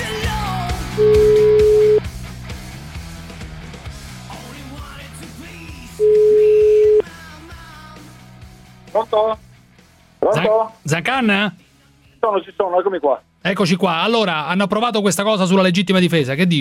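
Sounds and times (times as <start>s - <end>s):
music: 0.0s - 16.5s
telephone ringback tone of a phone call to a jeweler: 1.0s - 2.0s, 6.0s - 7.0s
speech: 9.2s - 9.5s, 10.5s - 11.6s, 12.2s - 16.5s.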